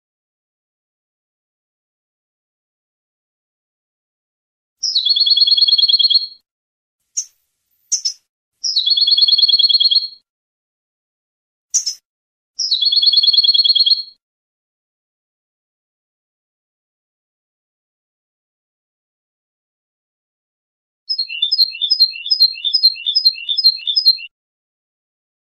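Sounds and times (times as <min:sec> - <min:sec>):
European goldfinch song: 0:04.8 - 0:06.4, 0:07.9 - 0:10.2, 0:12.6 - 0:14.2, 0:21.1 - 0:24.3.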